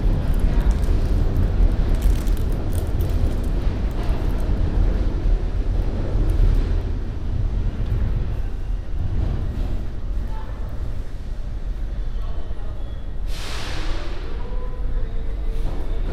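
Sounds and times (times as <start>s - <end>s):
low rumble of moving MTA transit: 0.0s - 16.1s
bright hiss: 13.2s - 14.2s.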